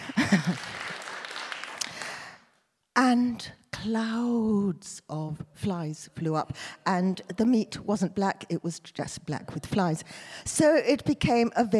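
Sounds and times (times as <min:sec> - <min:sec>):
audience clapping: 0:00.0 - 0:02.4
speech: 0:00.3 - 0:00.8, 0:03.0 - 0:11.7.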